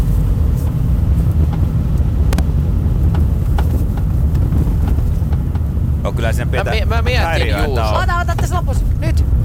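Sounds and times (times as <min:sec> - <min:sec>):
steady low road and engine rumble: 0:00.0 - 0:09.4
car rear axle knocking over bumps: 0:02.4 - 0:05.9
speech: 0:06.1 - 0:09.4.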